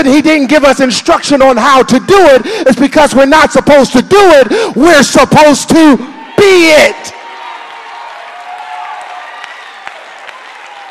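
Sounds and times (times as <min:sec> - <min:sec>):
speech: 0:00.0 - 0:07.2
audience clapping: 0:07.2 - 0:10.9.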